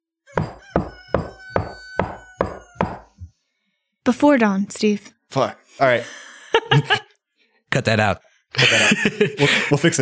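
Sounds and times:
knocking on a door: 0:00.4 - 0:03.1
speech: 0:04.1 - 0:07.0, 0:07.8 - 0:10.0
laughter: 0:06.2 - 0:07.1, 0:08.6 - 0:10.0.

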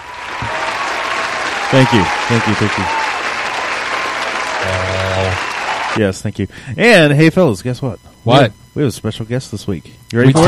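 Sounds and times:
loud applause: 0:00.0 - 0:06.0
speech: 0:01.7 - 0:03.0, 0:06.0 - 0:10.4.

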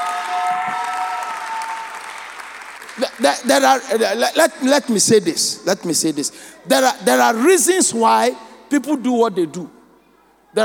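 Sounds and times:
audience clapping: 0:00.0 - 0:04.2
speech: 0:03.0 - 0:09.8.

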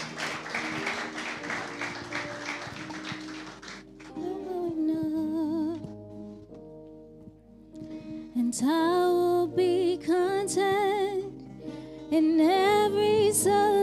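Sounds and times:
church congregation applauding: 0:00.0 - 0:04.1
sustained music: 0:00.0 - 0:09.4
speech: 0:08.6 - 0:10.7, 0:12.1 - 0:13.6.

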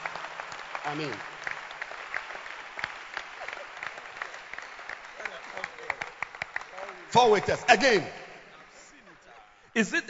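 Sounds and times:
audience clapping: 0:00.0 - 0:08.0
speech: 0:00.9 - 0:01.3, 0:07.1 - 0:08.2, 0:09.8 - 0:10.0.

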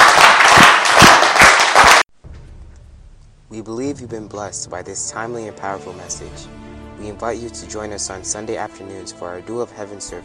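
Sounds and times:
audience clapping hands: 0:00.0 - 0:02.1
speech: 0:03.6 - 0:10.2.

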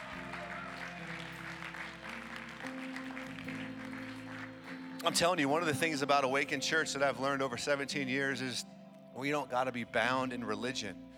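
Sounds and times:
audience clapping: 0:00.0 - 0:05.4
sustained low keyboard chords: 0:00.0 - 0:11.1
speech: 0:05.0 - 0:11.0.

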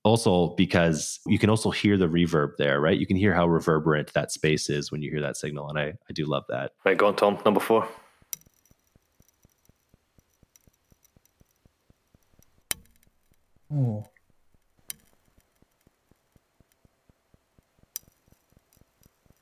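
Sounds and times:
speech: 0:00.1 - 0:08.0, 0:13.7 - 0:14.1
rapid faint ticks: 0:08.0 - 0:19.4
glass cracking in deep ocean: 0:08.2 - 0:19.4
person exclaiming: 0:13.7 - 0:14.1.

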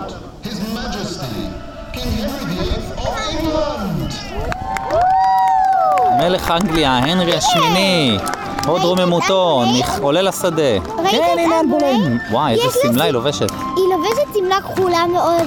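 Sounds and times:
speech: 0:00.5 - 0:04.5, 0:06.2 - 0:15.4
crowd cheering: 0:04.3 - 0:12.3.

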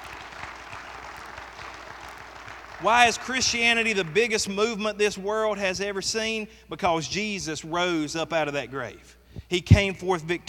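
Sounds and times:
audience clapping: 0:00.0 - 0:04.7
speech: 0:02.8 - 0:10.4.

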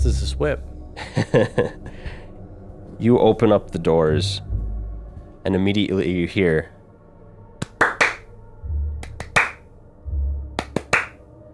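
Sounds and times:
speech: 0:00.0 - 0:02.1, 0:03.0 - 0:04.5, 0:05.4 - 0:06.7
laughter: 0:01.0 - 0:01.8
slow hand clapping: 0:07.6 - 0:08.2, 0:09.0 - 0:09.6, 0:10.6 - 0:11.2.

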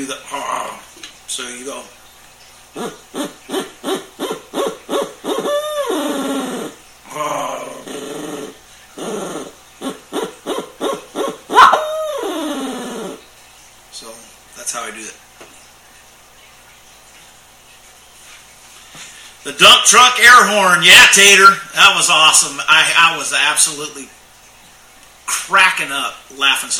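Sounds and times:
speech: 0:00.0 - 0:02.0, 0:02.8 - 0:04.0, 0:19.9 - 0:24.2, 0:25.5 - 0:26.7
rolling gargled trill: 0:02.7 - 0:13.3
person imitating owl calls with their voice: 0:02.8 - 0:13.2.

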